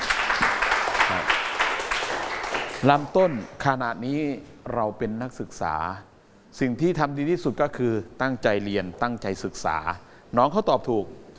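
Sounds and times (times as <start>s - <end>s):
students clapping for a classmate: 0.0s - 3.5s
speech: 1.1s - 1.4s, 2.8s - 11.3s.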